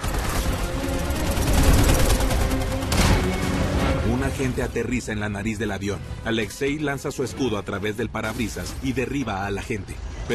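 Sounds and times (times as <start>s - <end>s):
machine-gun fire from agents parachuting toward a plane: 0.0s - 3.4s
speech: 4.4s - 10.3s.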